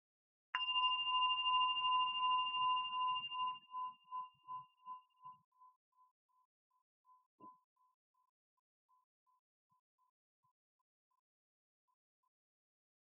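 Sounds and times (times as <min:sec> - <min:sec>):
meditation bell rung: 0:00.6 - 0:06.1.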